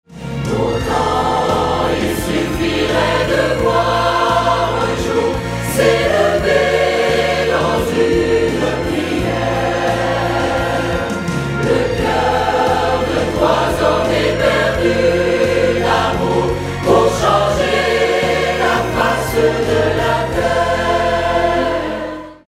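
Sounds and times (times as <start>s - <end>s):
SATB choir singing in B flat minor: 0.2s - 22.4s.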